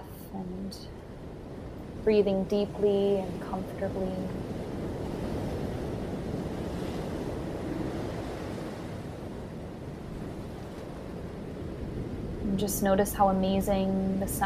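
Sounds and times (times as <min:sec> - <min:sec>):
beach waves breaking on shore: 0:01.0 - 0:14.4
speech: 0:02.0 - 0:04.5, 0:12.6 - 0:14.4.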